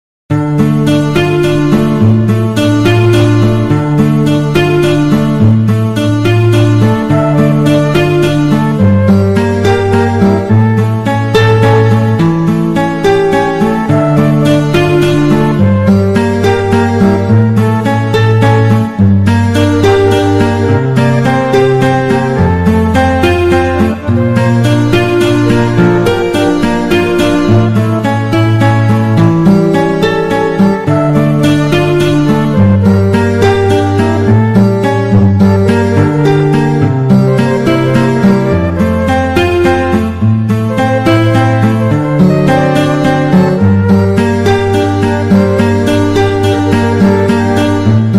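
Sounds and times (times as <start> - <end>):
instrumental music from Soviet films: 0.3 - 48.1.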